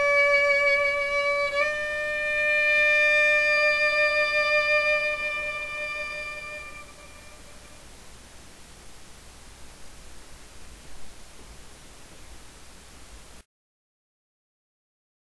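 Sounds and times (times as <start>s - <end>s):
violinist playing a violin solo: 0.0s - 7.9s.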